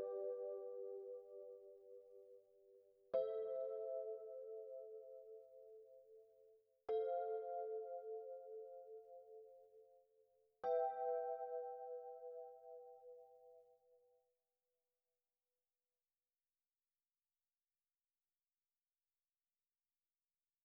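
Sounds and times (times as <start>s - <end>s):
electric piano: 0.0s - 6.3s, 6.9s - 9.8s, 10.6s - 13.6s.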